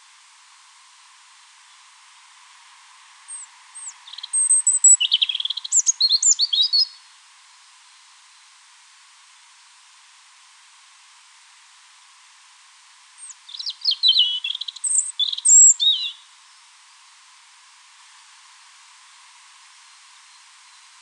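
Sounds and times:
European robin song: 0:03.3 - 0:07.0, 0:13.2 - 0:16.7.

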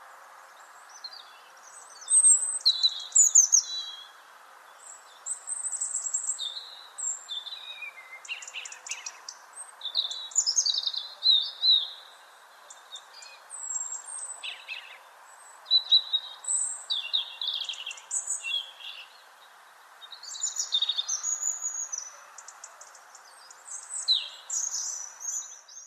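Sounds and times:
background hiss: 0:00.0 - 0:25.8
European robin singing: 0:00.5 - 0:25.8.

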